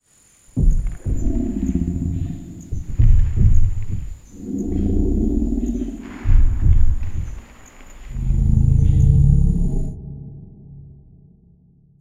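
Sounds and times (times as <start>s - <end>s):
lumbering tree monster: 0.6s - 11.4s.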